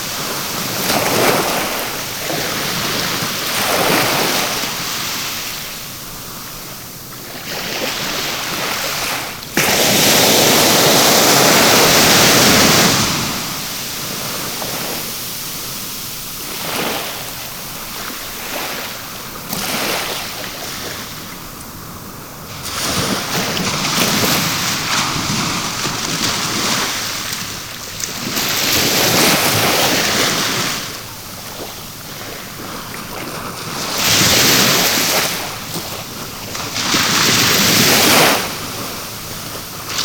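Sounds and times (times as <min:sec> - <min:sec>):
sea foam: 0:00.0 - 0:40.0.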